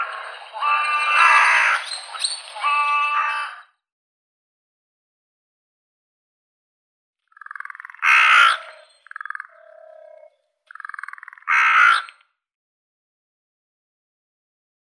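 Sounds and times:
hooded crow, Corvus cornix, calling: 0.0s - 3.7s, 7.3s - 12.2s.

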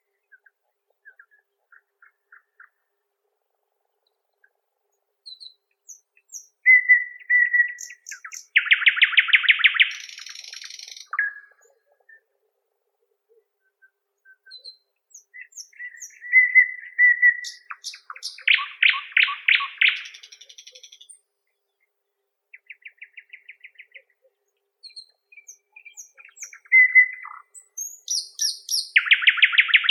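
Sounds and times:
common nightingale Luscinia luscinia singing: 5.2s - 12.4s, 13.3s - 21.9s, 22.5s - 29.8s.

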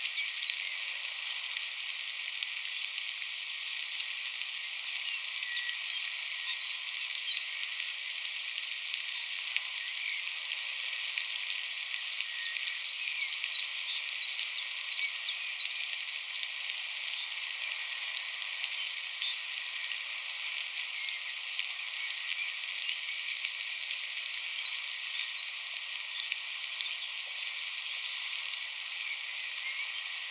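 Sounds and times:
light rain in a forest: 0.0s - 30.2s.

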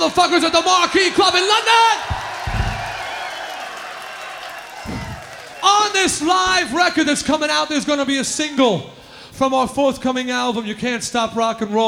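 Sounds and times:
speech: 0.0s - 2.2s, 5.6s - 11.8s
live audience applause: 0.0s - 6.9s.

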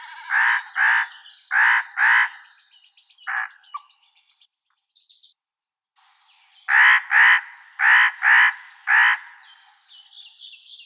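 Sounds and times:
spotted nutcracker Nucifraga caryocatactes calling: 0.0s - 4.0s, 6.7s - 9.6s.

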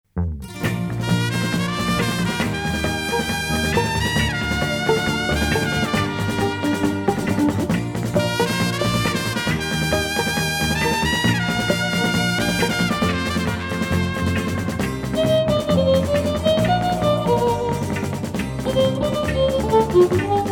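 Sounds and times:
trumpets and guitar playing a gallop: 0.5s - 20.5s.

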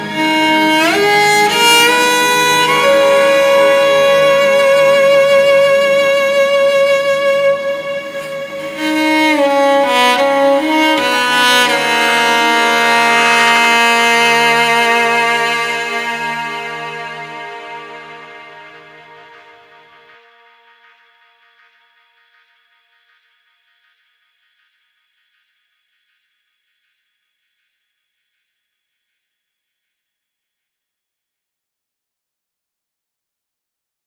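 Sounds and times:
cello solo: 0.0s - 20.0s.

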